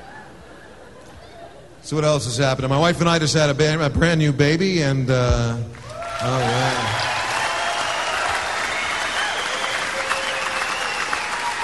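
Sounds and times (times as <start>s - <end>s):
speech: 1.8s - 7.0s
audience clapping: 5.7s - 11.6s.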